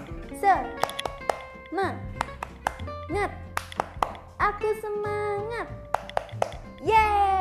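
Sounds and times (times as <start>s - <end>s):
rhythmic hand clapping cheer: 0.0s - 4.4s, 5.8s - 6.9s
speech: 0.4s - 0.9s, 1.7s - 2.2s, 3.1s - 3.5s, 4.4s - 5.9s, 6.8s - 7.3s.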